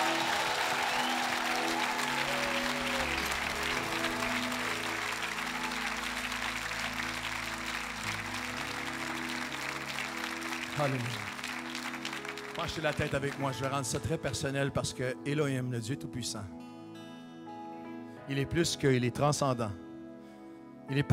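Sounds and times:
audience giving a standing ovation: 0:00.0 - 0:14.0
speech: 0:10.8 - 0:11.3, 0:12.6 - 0:16.6, 0:18.3 - 0:19.8, 0:20.9 - 0:21.1.

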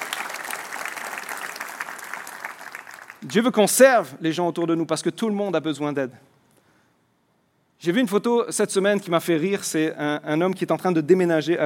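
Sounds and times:
audience applause: 0:00.0 - 0:03.3
speech: 0:03.2 - 0:06.3, 0:07.8 - 0:11.6.

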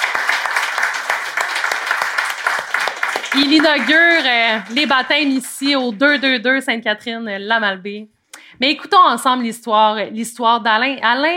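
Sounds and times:
audience applause: 0:00.0 - 0:06.3
speech: 0:03.4 - 0:11.3.

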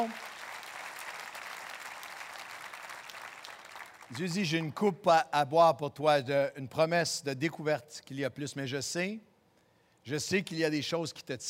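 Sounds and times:
speech: 0:00.0 - 0:00.3, 0:04.1 - 0:09.3, 0:10.0 - 0:11.4
audience applause: 0:00.0 - 0:04.1.

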